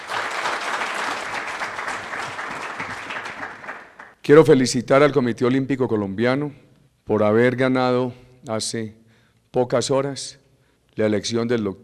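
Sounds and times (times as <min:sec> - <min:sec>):
audience applause: 0:00.0 - 0:04.2
speech: 0:04.2 - 0:10.4, 0:11.0 - 0:11.8.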